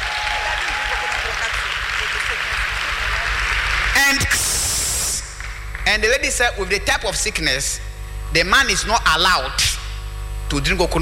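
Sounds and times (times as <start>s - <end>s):
audience clapping: 0.0s - 6.4s
sharp burst of noise: 1.7s - 5.7s
speech: 4.1s - 4.5s, 5.9s - 9.7s, 10.5s - 10.9s.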